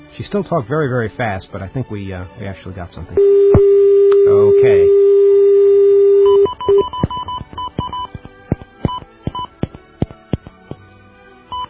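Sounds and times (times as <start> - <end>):
speech: 0.2 - 5.0
telephone dial tone: 3.2 - 8.2
touch-tone DTMF beeps as a phone number is dialed: 3.2 - 9.6.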